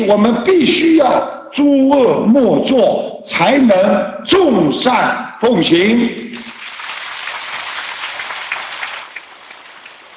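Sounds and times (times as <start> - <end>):
speech: 0.0 - 6.3
audience applause: 6.4 - 10.1.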